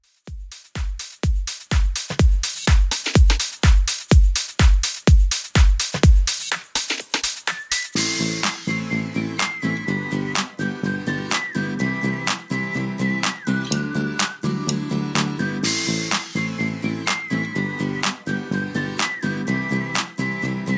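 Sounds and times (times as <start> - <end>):
extended club mix at 125 bpm: 0.0 - 20.7.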